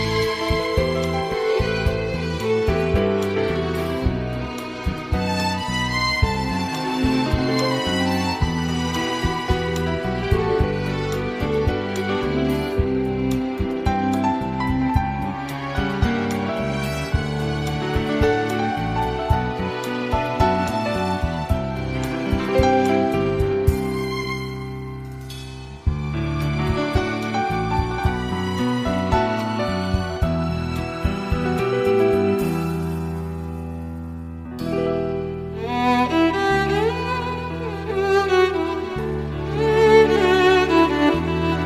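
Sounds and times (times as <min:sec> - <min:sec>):
violin: 0:00.0 - 0:41.6.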